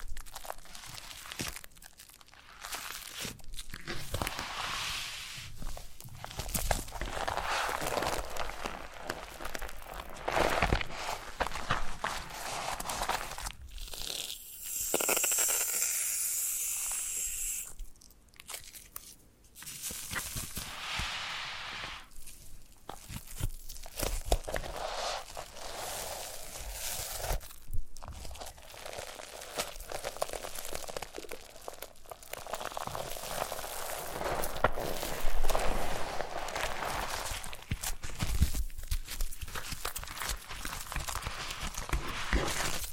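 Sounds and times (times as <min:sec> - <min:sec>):
foam massage rubbing and crinkling: 0:00.0 - 0:17.7, 0:19.6 - 0:42.9
airy hiss: 0:14.6 - 0:17.7.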